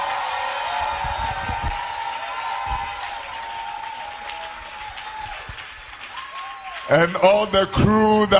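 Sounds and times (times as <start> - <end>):
audience clapping: 0.0 - 7.8
speech: 6.9 - 8.3.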